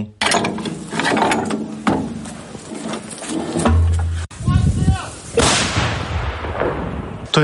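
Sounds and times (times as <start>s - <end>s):
clanking mechanical noise: 0.2s - 4.3s
152 mm howitzer firing: 5.4s - 7.3s.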